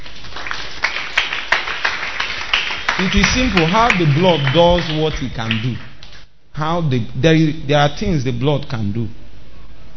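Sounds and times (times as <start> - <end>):
audience clapping: 0.0 - 6.3
speech: 3.0 - 5.9, 6.6 - 9.2.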